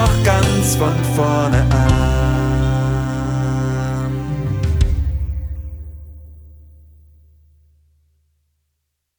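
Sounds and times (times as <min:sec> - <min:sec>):
tenor singing: 0:00.0 - 0:05.6.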